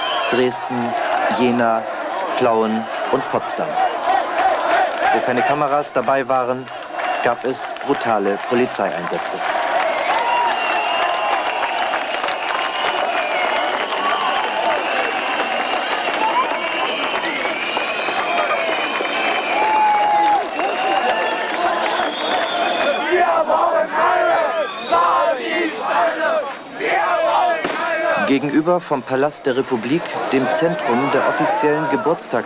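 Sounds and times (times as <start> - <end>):
crowd of demonstrators chanting and cheering: 0.0 - 32.4
speech: 0.3 - 4.2, 5.1 - 9.6, 28.3 - 32.4.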